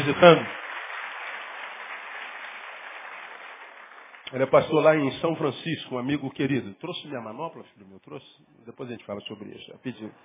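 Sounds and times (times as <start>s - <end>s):
speech: 0.0s - 0.6s, 4.3s - 10.2s
audience applauding: 0.0s - 5.1s.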